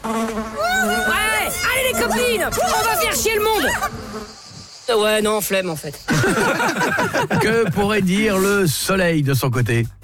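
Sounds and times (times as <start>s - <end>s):
flies buzzing: 0.0s - 8.4s
speech: 2.3s - 4.3s, 4.9s - 10.0s
laughter: 6.1s - 8.2s.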